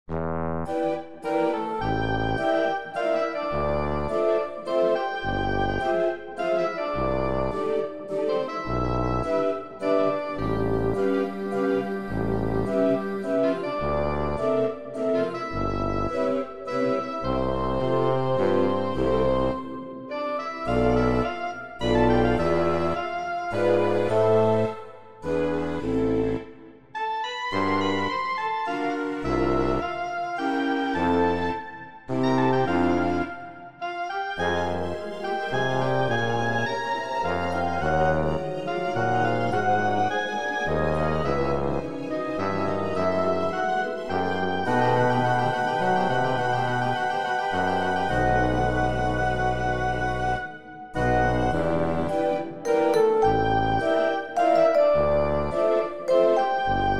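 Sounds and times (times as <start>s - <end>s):
waltz music: 0.0s - 56.9s.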